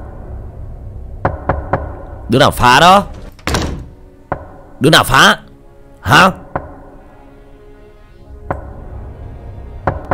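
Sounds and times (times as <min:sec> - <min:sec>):
knocking on a door: 0:01.2 - 0:02.0, 0:03.4 - 0:04.6, 0:06.5 - 0:06.8, 0:09.8 - 0:10.1
speech: 0:02.3 - 0:03.1, 0:04.8 - 0:05.4, 0:06.0 - 0:06.4.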